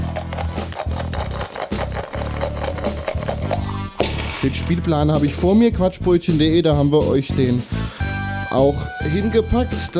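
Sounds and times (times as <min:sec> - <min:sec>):
dice rattling and clattering in a dice cup: 0:00.0 - 0:04.6
speech: 0:04.4 - 0:07.8, 0:08.5 - 0:09.9.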